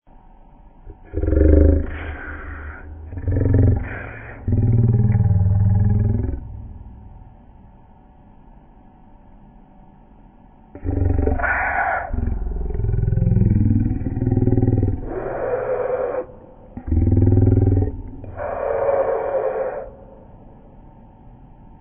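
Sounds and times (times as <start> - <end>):
growling: 0.9 - 7.3, 10.8 - 20.6.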